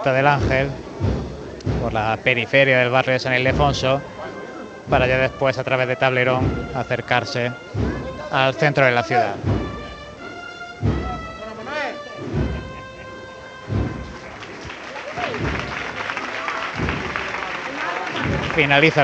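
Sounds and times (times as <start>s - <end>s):
speech: 0.0s - 1.1s, 1.8s - 4.2s, 4.9s - 9.6s, 18.6s - 19.0s
street crowd applauding procession: 12.6s - 19.0s.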